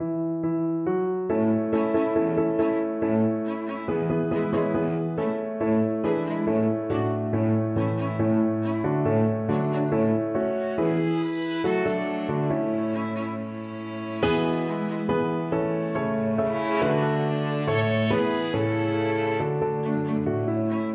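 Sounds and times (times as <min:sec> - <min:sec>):
piano quartet: 0:00.0 - 0:20.9.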